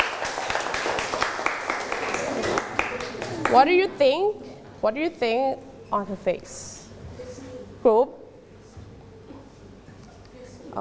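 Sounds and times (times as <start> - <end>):
classroom clapping: 0.0 - 3.8
speech: 3.5 - 6.7, 7.8 - 8.2.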